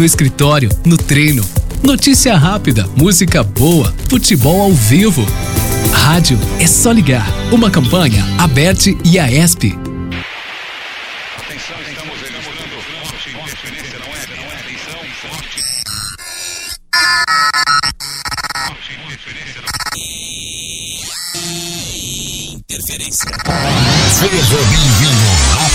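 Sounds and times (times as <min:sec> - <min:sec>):
speech: 0:00.0 - 0:09.8
radio interference noise: 0:10.1 - 0:25.7.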